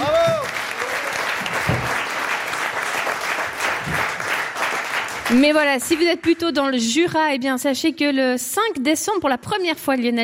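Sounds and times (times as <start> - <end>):
audience applause: 0.0 - 6.2
speech: 5.3 - 10.2.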